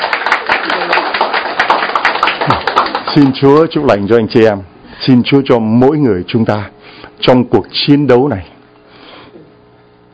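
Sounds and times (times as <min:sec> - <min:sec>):
crowd applauding: 0:00.0 - 0:03.7
speech: 0:02.5 - 0:08.5.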